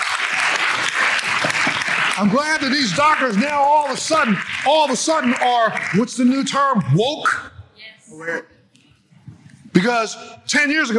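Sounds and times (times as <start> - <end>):
audience applause: 0.0 - 7.0
speech: 2.2 - 7.5, 8.1 - 8.5, 9.8 - 10.9.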